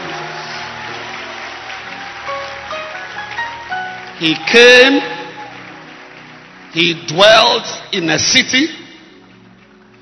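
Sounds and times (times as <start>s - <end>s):
audience clapping hands: 0.0s - 10.0s
speech: 4.2s - 5.2s, 6.8s - 8.8s.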